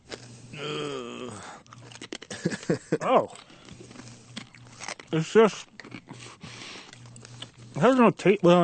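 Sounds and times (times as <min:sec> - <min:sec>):
crunchy chewing of a crab with its shell: 0:00.0 - 0:08.3
hummed groan: 0:00.5 - 0:01.7, 0:02.9 - 0:03.6
speech: 0:02.4 - 0:03.5, 0:05.1 - 0:05.7, 0:07.8 - 0:08.6.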